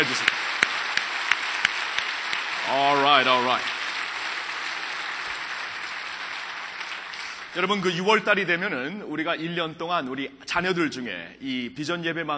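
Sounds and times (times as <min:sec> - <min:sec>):
audience applause: 0:00.0 - 0:08.2
speech: 0:02.7 - 0:03.8, 0:07.6 - 0:12.3.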